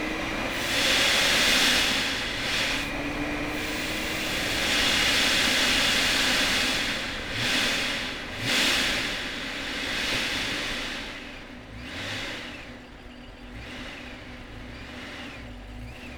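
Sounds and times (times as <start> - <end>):
2009 Corvette C6 Z06 engine starting: 0.0 - 16.1.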